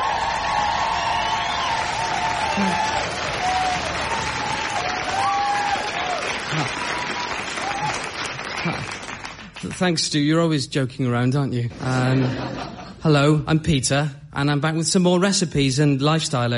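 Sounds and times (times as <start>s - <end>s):
audience whoops: 0.0s - 8.9s
studio audience clapping on a comedy show: 0.0s - 10.3s
speech: 2.6s - 3.0s, 9.8s - 16.5s
laughter: 11.7s - 13.0s.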